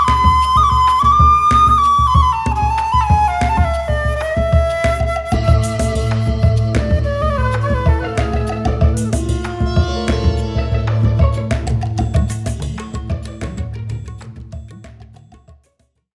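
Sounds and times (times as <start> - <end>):
flute: 0.0 - 14.3
soprano saxophone: 5.3 - 12.8.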